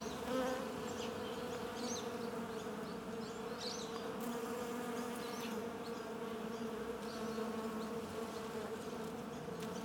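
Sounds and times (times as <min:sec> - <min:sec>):
bees humming: 0:00.0 - 0:09.8.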